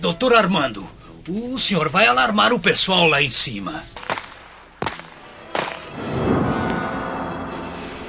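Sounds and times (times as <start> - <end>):
speech: 0.0 - 4.0
revolver gunshots: 4.0 - 6.8
low rumbling wash: 6.0 - 8.0.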